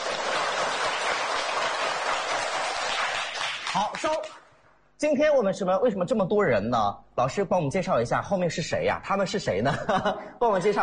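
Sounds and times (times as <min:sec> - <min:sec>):
applause: 0:00.0 - 0:04.4
speech: 0:03.8 - 0:04.4, 0:05.0 - 0:10.8.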